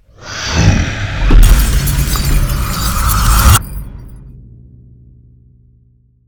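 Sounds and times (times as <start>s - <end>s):
melee combat: 1.2s - 4.1s.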